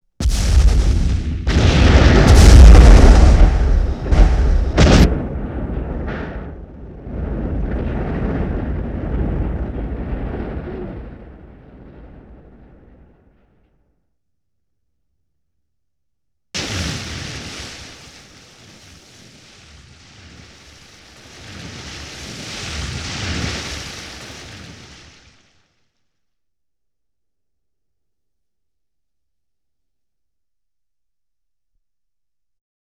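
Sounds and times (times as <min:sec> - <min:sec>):
explosion: 0:00.2 - 0:13.7, 0:16.6 - 0:25.6.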